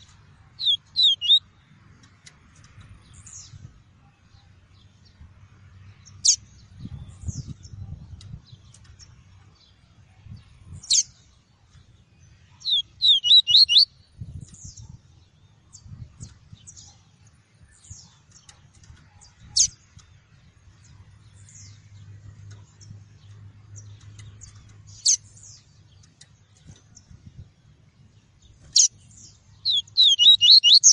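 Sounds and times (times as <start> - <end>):
double-collared seedeater song: 0.6 - 1.4, 12.6 - 13.9, 29.6 - 30.9.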